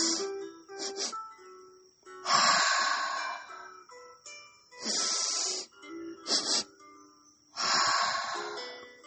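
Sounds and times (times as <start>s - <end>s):
nose sniffing breaths and long mouth exhales in a calming breathing exercise: 2.2s - 3.8s, 4.8s - 6.8s, 7.6s - 8.9s.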